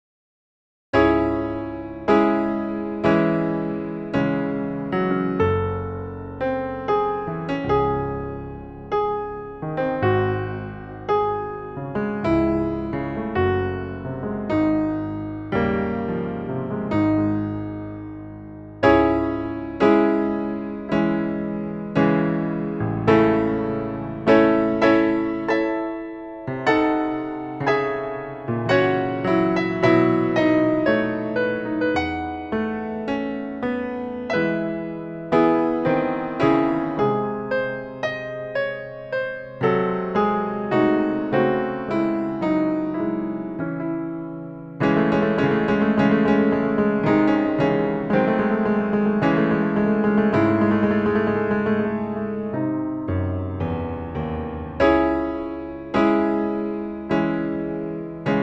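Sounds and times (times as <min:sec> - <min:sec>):
symphonic etude on piano: 0:00.9 - 0:58.4.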